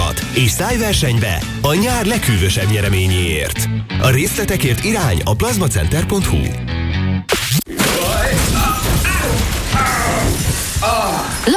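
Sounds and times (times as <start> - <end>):
speech: 0.4 - 6.8
toilet being broken with crash and shattering: 7.6 - 11.5
harsh clattering noise: 7.8 - 11.5.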